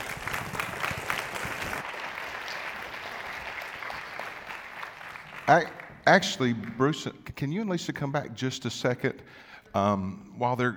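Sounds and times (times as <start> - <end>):
church congregation applauding to welcome a visiting pastor: 0.0 - 6.9
speech: 5.5 - 10.7.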